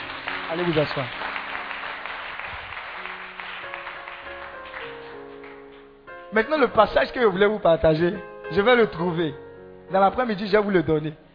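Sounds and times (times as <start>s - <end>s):
faint applause from a church congregation acclaiming the Lord: 0.0s - 5.7s
speech: 0.5s - 1.2s, 6.3s - 11.2s.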